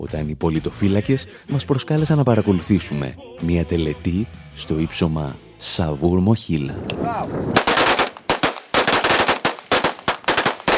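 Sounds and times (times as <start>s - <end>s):
speech: 0.0s - 7.8s
automatic gunfire salute by rebels on Saur-Mogila height in Donetsk: 7.6s - 10.7s.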